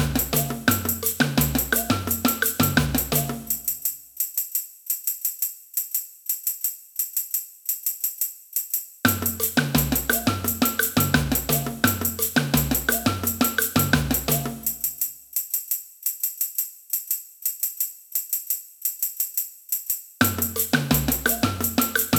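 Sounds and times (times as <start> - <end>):
samba band playing: 0.0 - 3.7, 9.1 - 14.9, 20.2 - 22.1.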